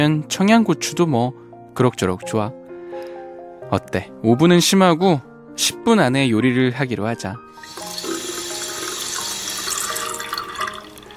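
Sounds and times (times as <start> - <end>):
speech: 0.0 - 2.6, 3.7 - 7.9
water running from a tap into a cooking pot: 7.6 - 11.1.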